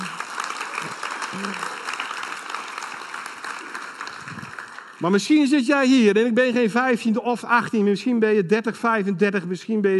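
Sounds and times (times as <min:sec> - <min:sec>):
audience applause: 0:00.0 - 0:05.8
speech: 0:00.8 - 0:01.7, 0:05.0 - 0:09.9.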